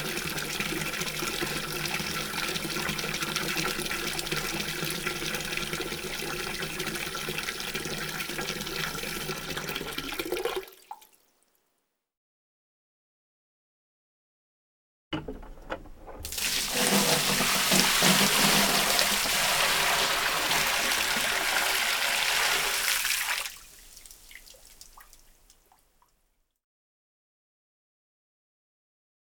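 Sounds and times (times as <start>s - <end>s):
water filling a bucket: 0.0s - 11.1s, 15.3s - 25.8s.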